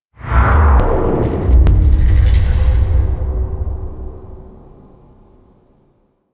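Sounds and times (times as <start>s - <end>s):
death music stinger: 0.8s - 5.3s.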